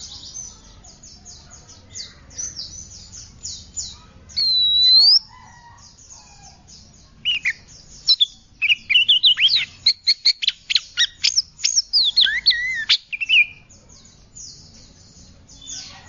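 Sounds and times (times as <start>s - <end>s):
Oriental magpie-robin whistling: 4.4s - 5.3s, 7.3s - 13.6s.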